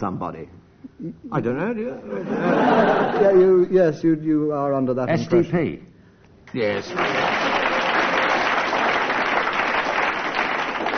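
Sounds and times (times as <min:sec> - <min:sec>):
speech: 0:00.0 - 0:05.9, 0:06.5 - 0:07.3
laughter: 0:02.0 - 0:03.6
audience applause: 0:06.8 - 0:10.9.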